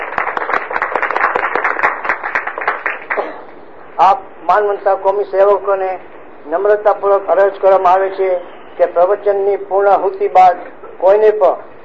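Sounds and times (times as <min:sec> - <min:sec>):
seminar audience clapping to welcome a guest: 0:00.0 - 0:03.3
speech: 0:04.0 - 0:11.7.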